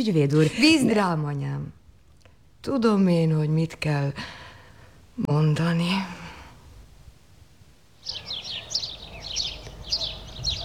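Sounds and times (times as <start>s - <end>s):
speech: 0.0s - 1.8s, 2.6s - 4.4s, 5.2s - 6.2s
sparrows chirping: 8.0s - 10.6s.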